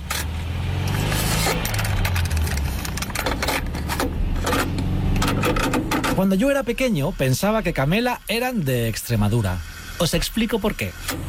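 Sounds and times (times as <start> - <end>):
rattling and clicking: 0.0 - 6.6
car engine rumbling: 0.0 - 11.2
speech: 6.2 - 11.2.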